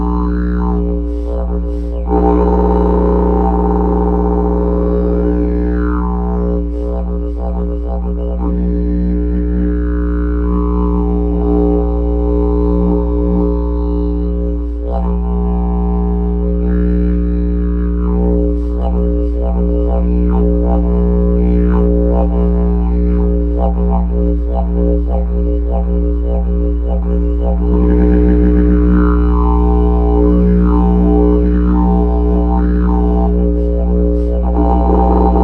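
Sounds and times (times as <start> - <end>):
didgeridoo: 0.0 - 35.4.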